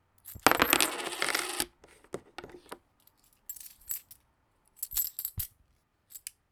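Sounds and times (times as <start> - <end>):
coin: 0.3 - 1.7.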